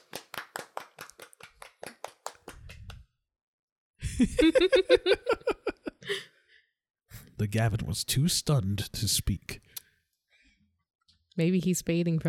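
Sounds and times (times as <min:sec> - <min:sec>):
few people clapping: 0:00.0 - 0:03.0
laughter: 0:04.0 - 0:06.2
speech: 0:04.2 - 0:05.4, 0:07.4 - 0:09.6, 0:11.4 - 0:12.2.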